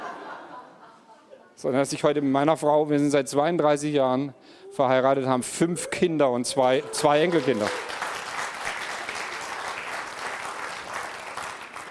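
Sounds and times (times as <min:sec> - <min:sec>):
laughter: 0:00.0 - 0:01.5
speech: 0:01.6 - 0:08.0
audience applause: 0:05.9 - 0:11.8.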